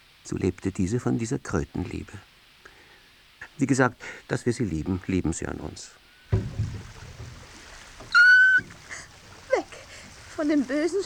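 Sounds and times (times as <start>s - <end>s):
speech: 0.3s - 2.3s, 3.6s - 6.5s, 10.4s - 11.0s
water sloshing and swishing as a rowing boat is rowed away from reeds: 6.3s - 11.0s
sharp steady squeal: 8.1s - 8.8s.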